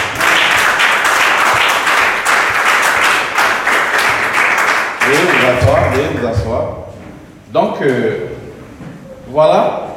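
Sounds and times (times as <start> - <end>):
church congregation clapping for the Lord: 0.0 - 6.6
speech: 7.5 - 8.2, 9.3 - 9.8.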